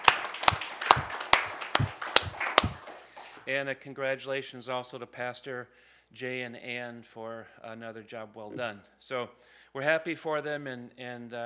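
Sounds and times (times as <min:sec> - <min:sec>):
audience clapping in a slow even rhythm: 0:00.0 - 0:03.5
speech: 0:03.5 - 0:11.4.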